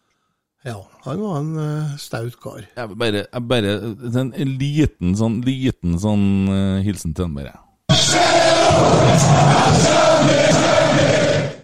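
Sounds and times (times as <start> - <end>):
speech: 0.6 - 11.3
small group shouting a hurray cheer: 7.9 - 11.6.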